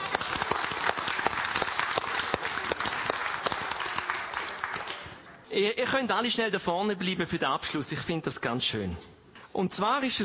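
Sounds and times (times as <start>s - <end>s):
audience applause: 0.0s - 5.2s
speech: 5.5s - 10.2s.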